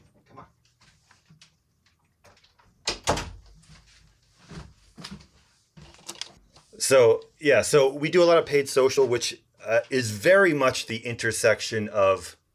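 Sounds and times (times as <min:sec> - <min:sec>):
door thudding: 0:02.9 - 0:03.5
speech: 0:06.8 - 0:12.4.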